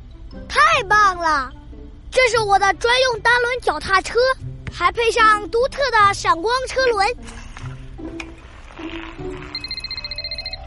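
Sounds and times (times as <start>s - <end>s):
speech: 0.3s - 7.4s
telephone ringing: 8.9s - 10.6s.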